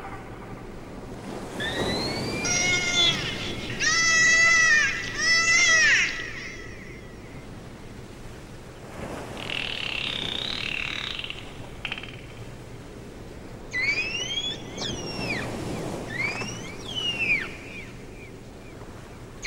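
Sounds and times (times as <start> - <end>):
dolphins vocalizing: 1.5 - 7.6, 9.3 - 12.3, 13.7 - 18.1.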